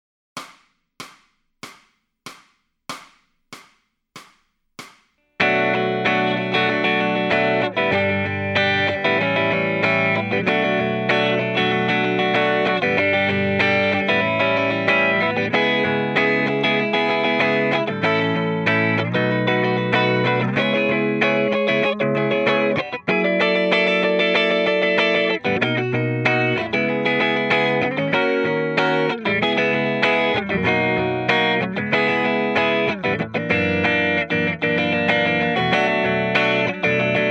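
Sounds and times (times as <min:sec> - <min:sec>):
electric guitar lead backing track: 0:05.4 - 0:37.2.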